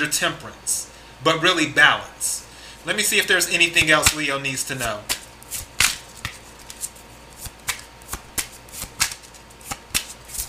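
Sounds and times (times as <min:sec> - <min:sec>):
speech: 0:00.0 - 0:05.2
tarot cards being shuffled: 0:04.8 - 0:10.4.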